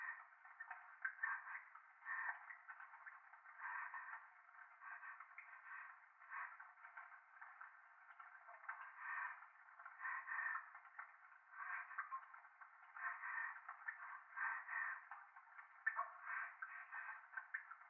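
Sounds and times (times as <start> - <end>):
breathing in the left ear: 1.2 - 2.4, 3.6 - 7.6, 8.7 - 12.2, 12.9 - 15.3, 16.0 - 17.6.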